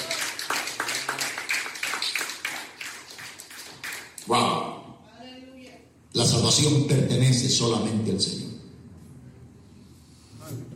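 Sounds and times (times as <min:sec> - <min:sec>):
audience applause: 0:00.0 - 0:04.2
speech: 0:04.3 - 0:04.5, 0:06.3 - 0:08.5.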